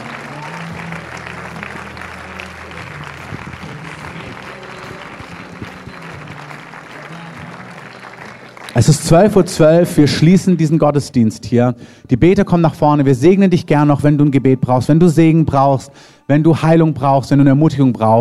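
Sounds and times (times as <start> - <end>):
audience applause: 0.0 - 9.8
speech: 8.8 - 18.2.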